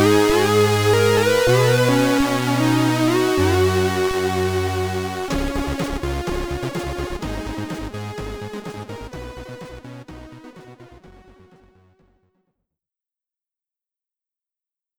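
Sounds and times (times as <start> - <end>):
SID stereo chiptune name entry music: 0.0 - 11.6.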